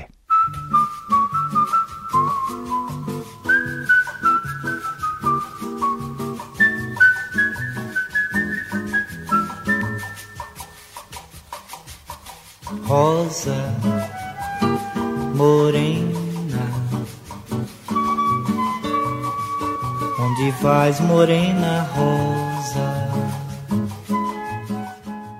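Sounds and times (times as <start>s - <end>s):
acoustic guitar plucking syncopated bossa nova chords: 0.0s - 12.0s, 12.6s - 25.3s
smooth high melodic line: 0.3s - 11.0s, 13.6s - 25.3s
speech: 12.9s - 14.0s, 20.5s - 23.4s.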